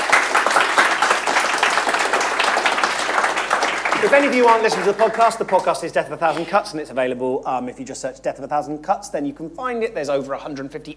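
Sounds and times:
audience applause: 0:00.0 - 0:05.9
speech: 0:04.0 - 0:10.9.

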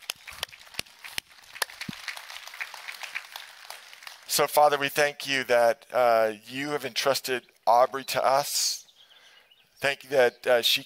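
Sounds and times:
audience clapping: 0:00.0 - 0:04.8
speech: 0:04.4 - 0:08.8, 0:09.8 - 0:10.8.

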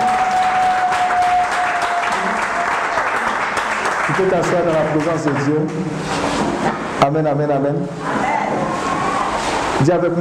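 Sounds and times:
congregation applauding in church: 0:00.0 - 0:06.1
speech: 0:04.2 - 0:08.6, 0:09.8 - 0:10.2.

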